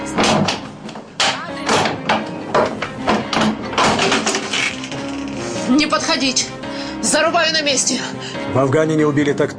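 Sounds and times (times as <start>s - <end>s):
door being forced open: 0.2s - 5.4s
speech: 6.1s - 9.5s.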